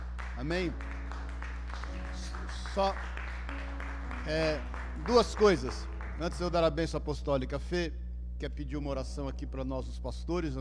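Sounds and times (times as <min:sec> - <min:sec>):
scattered audience clapping: 0:00.0 - 0:07.1
low electrical hum: 0:00.0 - 0:10.5
speech: 0:00.4 - 0:01.0, 0:02.8 - 0:03.6, 0:04.2 - 0:10.5.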